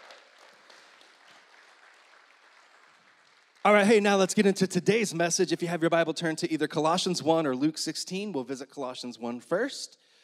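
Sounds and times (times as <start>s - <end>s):
audience clapping: 0.0s - 4.5s
speech: 3.6s - 10.0s.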